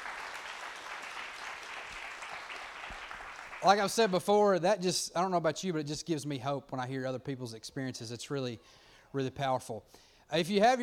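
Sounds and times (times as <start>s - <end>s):
crowd round of applause: 0.0s - 4.1s
speech: 3.6s - 10.8s.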